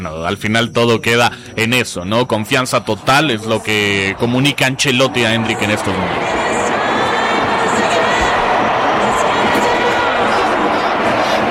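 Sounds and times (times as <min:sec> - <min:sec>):
speech: 0:00.0 - 0:06.4
stadium crowd shouting: 0:02.8 - 0:11.4.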